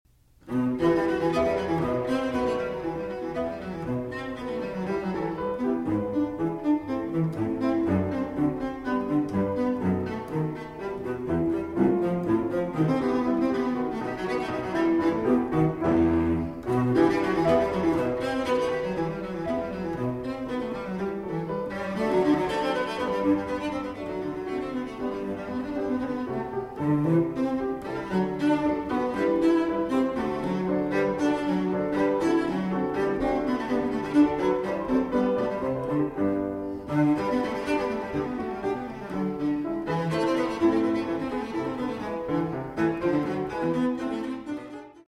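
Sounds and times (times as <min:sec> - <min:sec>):
cello sonata allegro in E minor: 0:00.1 - 0:45.0.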